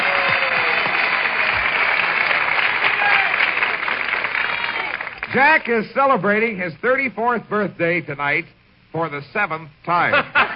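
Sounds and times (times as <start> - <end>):
studio audience applause: 0.0 - 5.4
speech: 5.4 - 10.5
laughter: 10.0 - 10.5.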